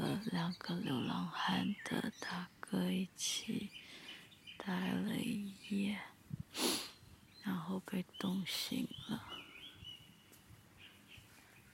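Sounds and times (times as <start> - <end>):
birds chirping: 0.0 - 6.2, 6.9 - 11.7
speech: 0.1 - 4.0, 4.6 - 6.8, 7.4 - 9.4.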